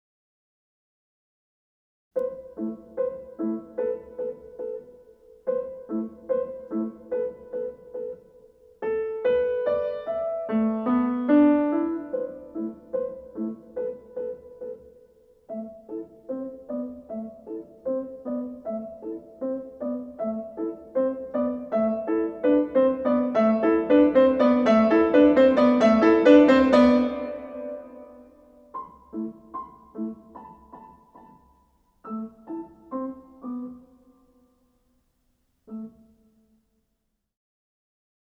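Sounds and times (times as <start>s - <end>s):
haiku piano: 2.2s - 34.8s, 35.6s - 36.6s.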